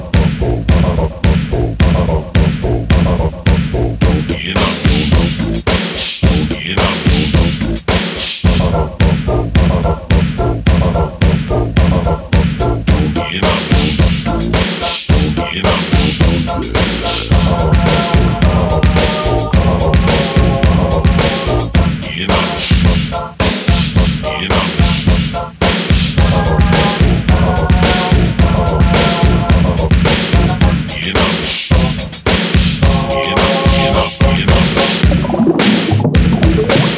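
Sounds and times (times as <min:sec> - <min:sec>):
beatboxing: 0:00.0 - 0:36.9.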